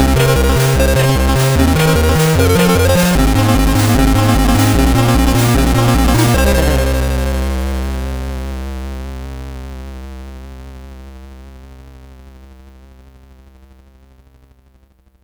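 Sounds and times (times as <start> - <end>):
SID chiptune music on a CSG8580R5 chip: 0.0 - 8.3.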